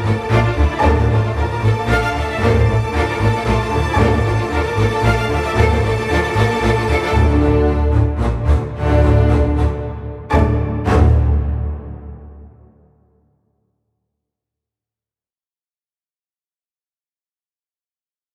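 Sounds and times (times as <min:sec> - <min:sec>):
solo strings: 0:00.0 - 0:12.9.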